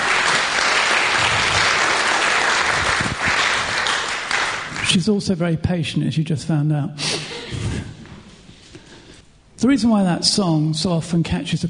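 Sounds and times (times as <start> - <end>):
audience applause: 0.0 - 5.0
speech: 4.9 - 7.8, 9.6 - 11.6.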